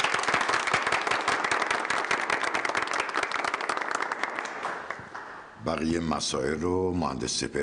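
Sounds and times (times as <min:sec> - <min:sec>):
audience at a company gathering clapping: 0:00.0 - 0:05.6
speech: 0:05.7 - 0:07.6.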